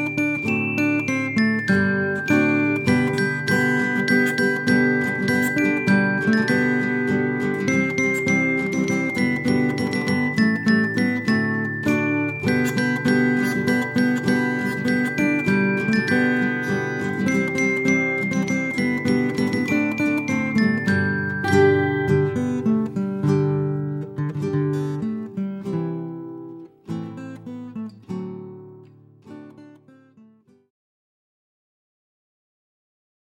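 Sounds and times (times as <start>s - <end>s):
holiday bell music: 0.0s - 25.1s.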